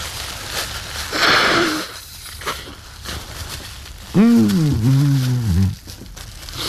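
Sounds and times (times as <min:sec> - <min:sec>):
nose blowing: 0:01.1 - 0:02.0, 0:04.1 - 0:05.8
speech: 0:04.2 - 0:05.0.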